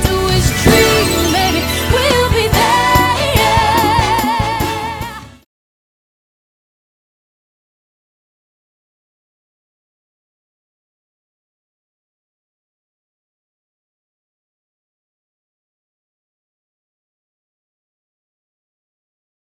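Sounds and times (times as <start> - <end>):
vocals: 0.0 - 5.4.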